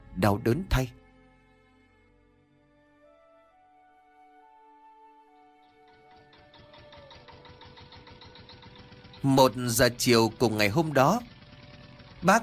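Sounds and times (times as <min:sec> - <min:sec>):
speech: 0:00.2 - 0:01.0, 0:09.2 - 0:11.3, 0:12.2 - 0:12.4
old công nông farm truck engine chugging: 0:05.3 - 0:12.4.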